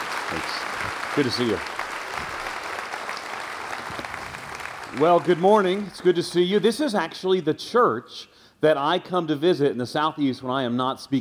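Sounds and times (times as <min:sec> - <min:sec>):
church congregation applauding a guest speaker at a morning service: 0:00.0 - 0:06.7
speech: 0:00.3 - 0:01.7, 0:05.0 - 0:11.2.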